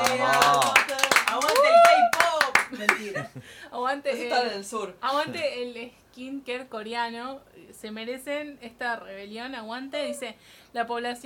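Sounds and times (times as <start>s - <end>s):
clapping applause: 0.0s - 3.1s
speech: 3.9s - 11.2s.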